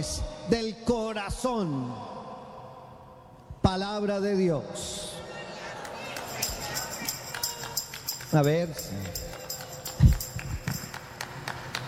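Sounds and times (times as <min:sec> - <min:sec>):
speech: 0:00.0 - 0:02.2, 0:03.6 - 0:05.1, 0:08.3 - 0:09.3
one person clapping alone: 0:05.8 - 0:11.8.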